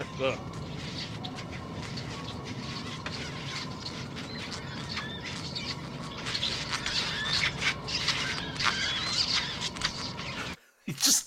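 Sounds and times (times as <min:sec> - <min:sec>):
rough rubbing undertone: 0:00.0 - 0:10.6
suckling pups squealing and chirping: 0:00.0 - 0:10.6.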